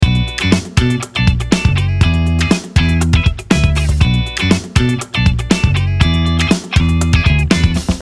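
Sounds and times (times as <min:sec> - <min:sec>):
funk Fender Telecaster electric guitar loop: 0:00.0 - 0:07.9.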